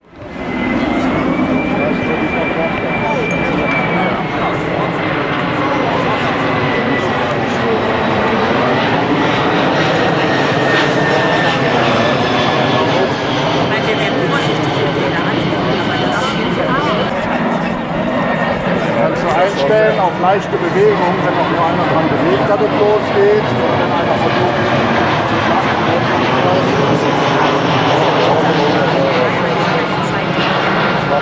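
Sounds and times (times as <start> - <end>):
aircraft noise: 0.0 - 31.2.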